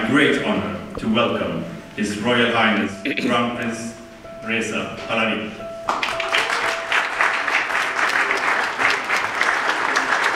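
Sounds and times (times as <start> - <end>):
speech: 0.1 - 6.2
parliament members applauding in a standing ovation: 5.9 - 10.3.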